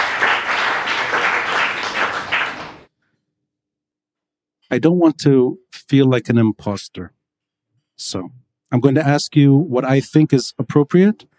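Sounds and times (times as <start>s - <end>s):
audience applause: 0.0s - 2.9s
speech: 4.7s - 7.2s, 8.0s - 11.3s.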